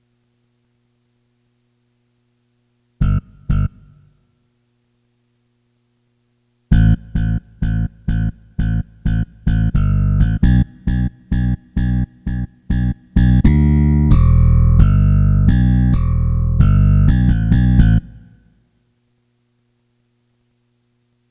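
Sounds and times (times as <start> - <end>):
bass: 3.0 - 4.2, 6.7 - 18.6.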